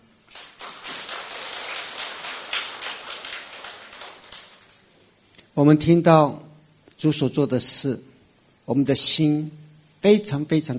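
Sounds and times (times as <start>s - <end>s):
applause: 0.3s - 4.9s
speech: 5.6s - 8.1s, 8.7s - 10.7s.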